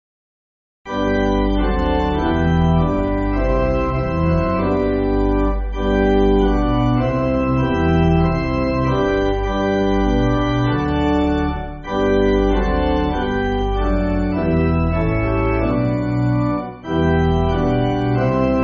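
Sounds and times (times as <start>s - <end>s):
pipe organ church backing music: 0.9s - 18.6s.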